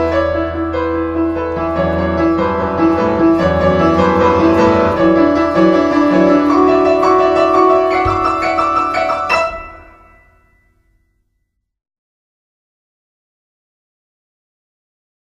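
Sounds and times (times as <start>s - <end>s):
prelude: 0.0s - 10.8s.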